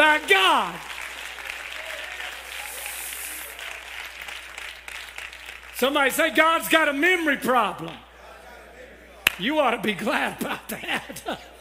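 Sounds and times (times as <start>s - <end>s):
audience clapping hands: 0.0s - 7.0s, 9.2s - 9.4s
speech: 0.2s - 0.9s, 5.8s - 8.0s, 9.4s - 11.5s.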